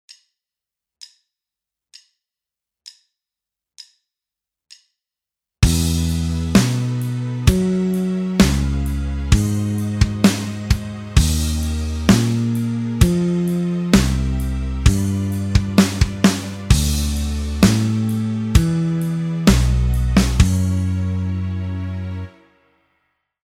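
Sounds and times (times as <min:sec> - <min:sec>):
backing music: 0:05.6 - 0:22.8.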